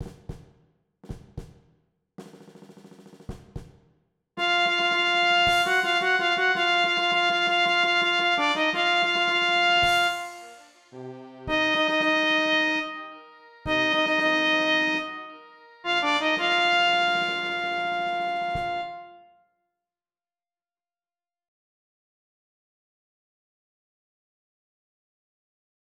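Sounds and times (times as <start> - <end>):
B flat trumpet playing: 4.4 - 19.4.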